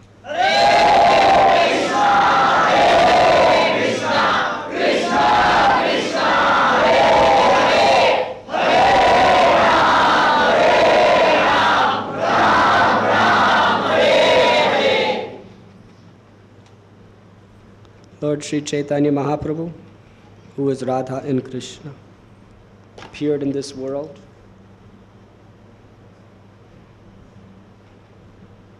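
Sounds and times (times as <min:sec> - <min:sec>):
crowd chanting a mantra in unison: 0:00.3 - 0:15.5
speech: 0:18.4 - 0:19.9, 0:20.6 - 0:22.0, 0:23.2 - 0:24.3.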